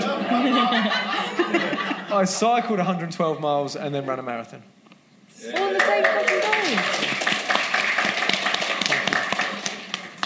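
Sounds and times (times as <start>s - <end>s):
laughter: 0.0s - 2.9s
speech: 2.1s - 4.8s, 5.4s - 7.0s
spontaneous audience applause: 5.4s - 10.2s.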